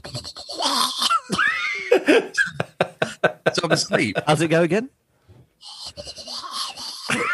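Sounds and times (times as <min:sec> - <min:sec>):
person imitating mouth-breathing noise through nasal mask: 0:00.0 - 0:01.3, 0:05.6 - 0:07.3
laughter: 0:01.2 - 0:04.4, 0:07.0 - 0:07.3
speech: 0:02.1 - 0:02.4, 0:03.5 - 0:05.0.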